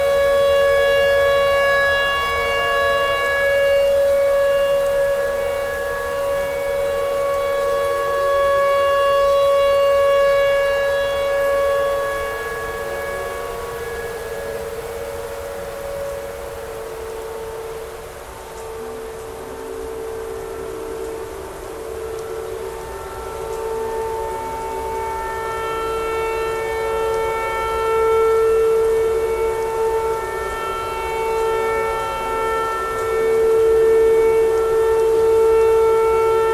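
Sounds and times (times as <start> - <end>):
tornado siren: 0.0 - 36.5.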